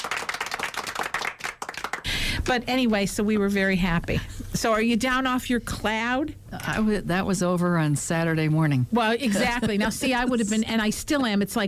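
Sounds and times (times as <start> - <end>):
clapping sound effect: 0.0 - 2.1
speech: 2.4 - 11.6.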